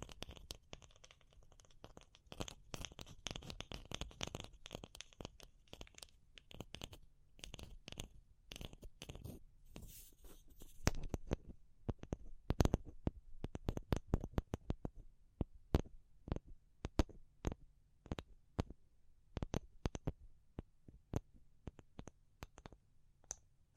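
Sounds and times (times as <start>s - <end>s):
fingertip tapping: 0.0s - 23.7s
low quiet hum: 0.0s - 23.7s.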